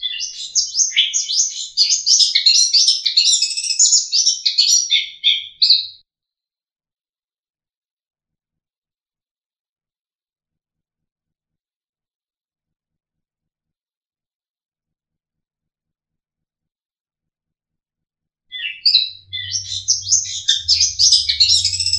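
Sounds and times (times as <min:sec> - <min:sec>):
long-tailed shrike trilling: 0:00.0 - 0:05.4, 0:18.6 - 0:21.9.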